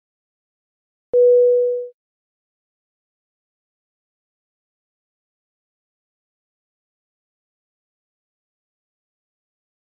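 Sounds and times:
car seat belt alert chime: 1.2s - 1.9s.

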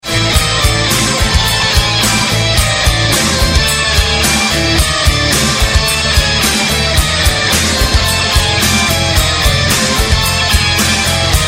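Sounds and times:
rock and metal music: 0.0s - 11.4s.

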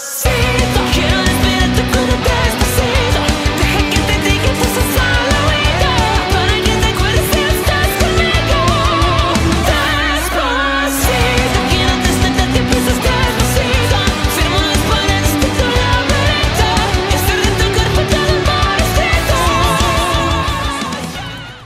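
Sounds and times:
metal music: 0.2s - 21.6s.

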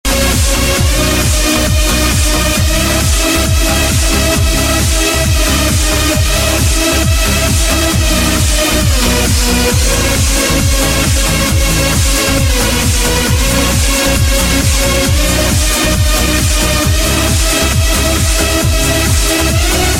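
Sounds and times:
trance music: 0.0s - 19.9s.

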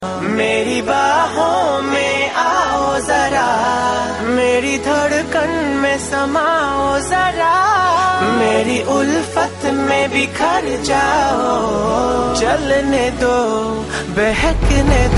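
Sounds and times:
romantic tone: 0.0s - 15.1s.

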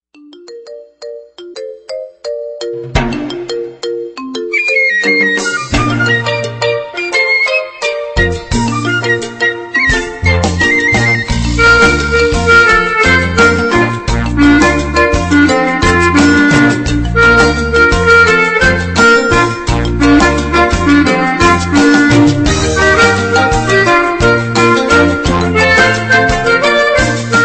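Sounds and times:
Caribbean music: 0.2s - 27.4s.

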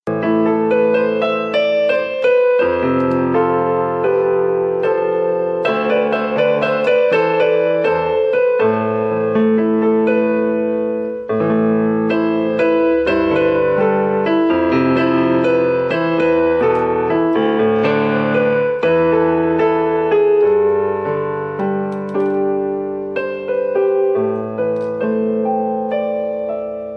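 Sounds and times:
piano improvisation: 0.0s - 26.9s.

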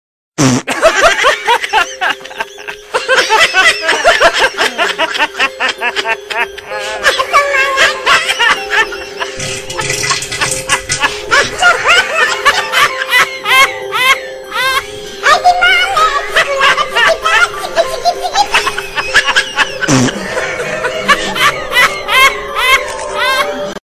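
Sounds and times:
farting: 0.4s - 0.7s
laughing: 0.7s - 23.8s.

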